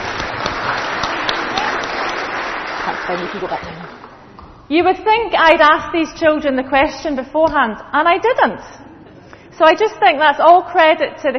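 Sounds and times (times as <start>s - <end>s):
group applause: 0.0s - 4.3s
speech: 3.1s - 4.1s, 4.7s - 8.9s, 9.6s - 11.3s.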